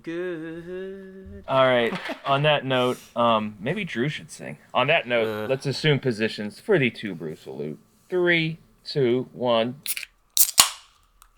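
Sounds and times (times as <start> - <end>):
speech: 0.0 - 10.1
bottle of Robitussin DM being opened: 9.9 - 10.8.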